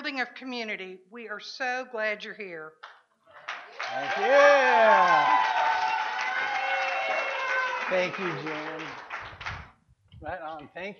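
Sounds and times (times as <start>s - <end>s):
speech: 0.1s - 3.0s, 3.9s - 6.0s, 7.9s - 9.0s, 10.2s - 10.9s
crowd cheering and applauding: 3.4s - 9.7s.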